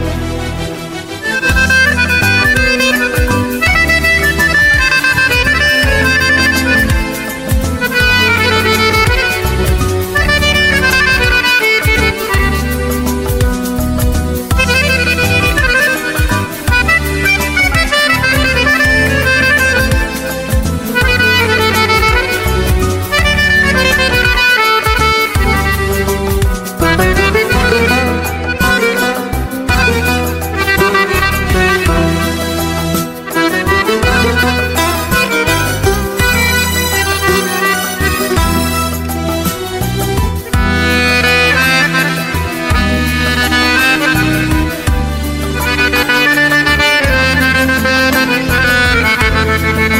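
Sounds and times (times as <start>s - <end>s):
accordion: 0.0s - 49.9s.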